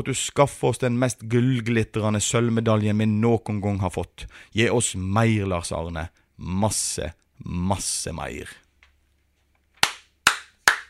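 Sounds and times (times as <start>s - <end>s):
speech: 0.0s - 8.6s
crisp hand claps: 9.8s - 10.8s.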